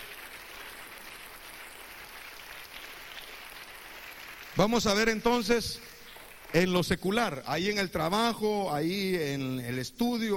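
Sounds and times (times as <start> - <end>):
audience clapping: 0.0 - 8.0
speech: 4.6 - 5.9, 6.5 - 10.3.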